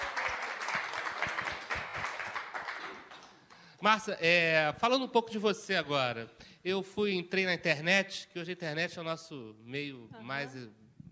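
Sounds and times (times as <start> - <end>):
audience applause: 0.0 - 3.7
speech: 3.8 - 10.8.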